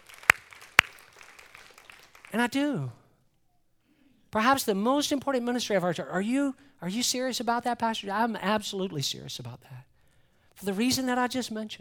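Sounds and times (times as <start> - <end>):
audience clapping: 0.0 - 2.6
speech: 2.3 - 3.0, 4.3 - 9.9, 10.6 - 11.7.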